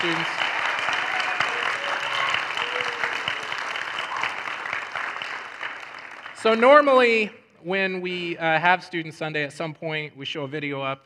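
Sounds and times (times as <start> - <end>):
speech: 0.0 - 0.5, 6.4 - 11.0
audience clapping: 0.0 - 7.3.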